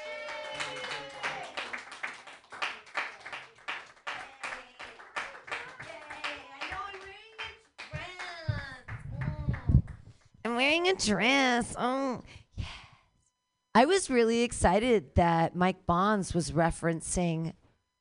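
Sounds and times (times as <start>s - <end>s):
audience clapping: 0.0s - 10.3s
speech: 10.5s - 12.4s, 13.8s - 17.6s.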